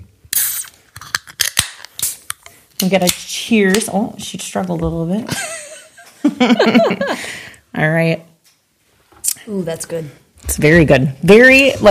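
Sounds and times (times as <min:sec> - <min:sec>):
can of shandy cracked open with fizzy hiss: 0:00.3 - 0:02.3
speech: 0:02.8 - 0:05.6, 0:06.4 - 0:08.3, 0:09.5 - 0:11.8
laughter: 0:05.3 - 0:07.2.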